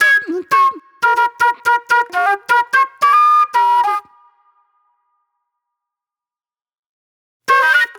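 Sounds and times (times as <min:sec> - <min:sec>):
soul flute music: 0:00.0 - 0:05.0, 0:07.5 - 0:07.9.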